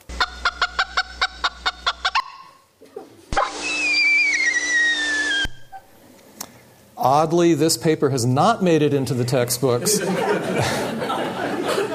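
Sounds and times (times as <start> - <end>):
bird predator alarm calls with sharp clucking notes: 0.1 - 2.6
bird alarm scream with a slowly falling whistled tone: 3.4 - 5.8
speech: 7.0 - 11.2
laughter: 9.7 - 11.9.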